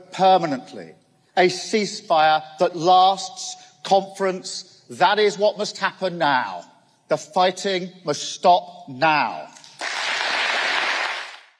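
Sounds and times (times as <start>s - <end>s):
speech: 0.2s - 9.6s
conference audience applause for Keir Starmer: 9.8s - 11.5s.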